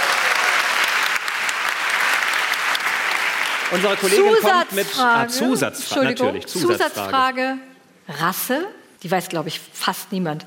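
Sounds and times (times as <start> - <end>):
audience applause: 0.0 - 5.0
speech: 3.7 - 10.4.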